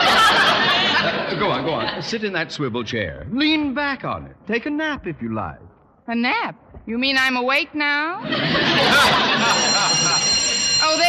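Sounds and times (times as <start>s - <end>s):
laughter: 0.0s - 2.2s, 8.2s - 10.9s
speech: 1.3s - 9.8s
electric school bell ringing: 8.8s - 11.0s.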